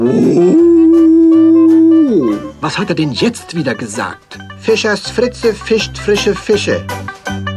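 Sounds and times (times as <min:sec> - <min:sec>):
speech: 0:00.0 - 0:00.7, 0:02.6 - 0:07.0
dog howling like a drawn-out letter O: 0:00.0 - 0:02.5.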